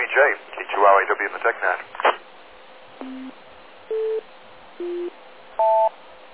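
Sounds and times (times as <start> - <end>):
faint hiss: 0.0 - 6.3
speech: 0.2 - 2.2
sequence of electronic timing tones: 3.0 - 4.2.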